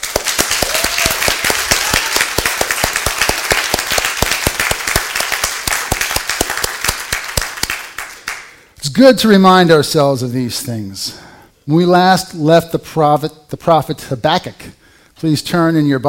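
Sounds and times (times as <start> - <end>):
crowd clapping: 0.0 - 8.8
speech: 8.9 - 16.0.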